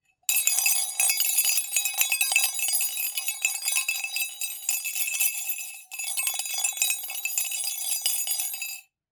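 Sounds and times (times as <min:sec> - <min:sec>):
spoon in glass: 0:00.3 - 0:08.9.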